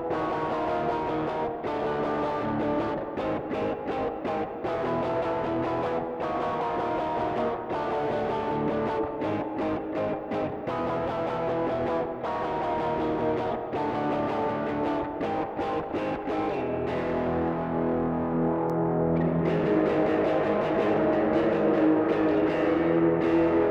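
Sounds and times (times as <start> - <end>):
DI line guitar: 0.0 - 23.6.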